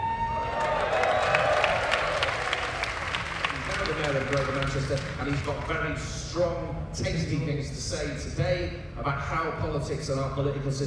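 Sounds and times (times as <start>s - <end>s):
crowd applauding: 0.0s - 6.0s
speech: 4.3s - 10.8s.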